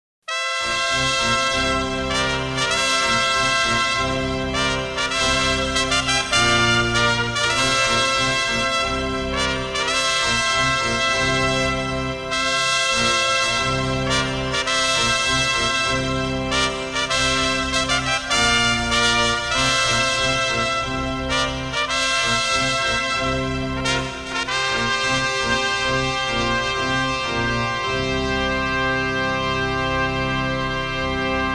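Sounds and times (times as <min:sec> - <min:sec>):
ceremonial fanfare: 0:00.3 - 0:31.5.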